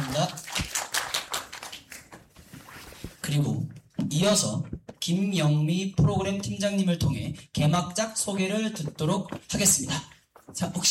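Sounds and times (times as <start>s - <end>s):
audience applause: 0.0s - 2.0s
speech: 0.2s - 0.7s, 3.3s - 10.8s.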